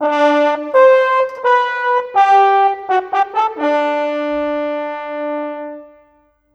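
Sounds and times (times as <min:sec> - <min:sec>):
cinematic horns: 0:00.0 - 0:06.4.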